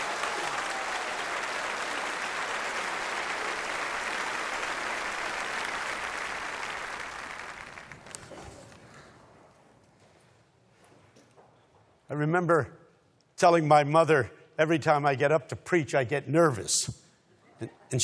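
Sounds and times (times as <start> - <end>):
audience applause welcoming a speaker: 0.0 - 8.8
speech: 12.1 - 12.8, 13.4 - 17.0, 17.6 - 18.0.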